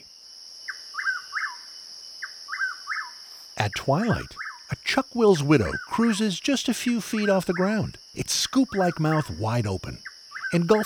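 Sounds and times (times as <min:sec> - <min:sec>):
steady high insect buzz: 0:00.0 - 0:10.8
speech: 0:03.6 - 0:10.8
willow flycatcher call notes in a large shrub: 0:03.6 - 0:10.8.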